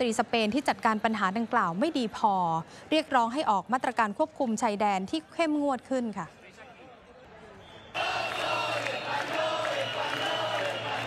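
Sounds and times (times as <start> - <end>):
speech: 0.0 - 6.4
protest crowd shouting and chanting: 7.6 - 11.0.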